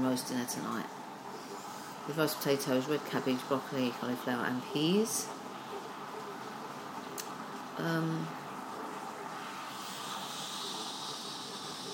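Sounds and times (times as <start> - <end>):
speech: 0.2 - 1.0, 2.1 - 5.4, 7.8 - 8.4
Tassimo coffee machine brewing with hissing steam: 9.3 - 11.9.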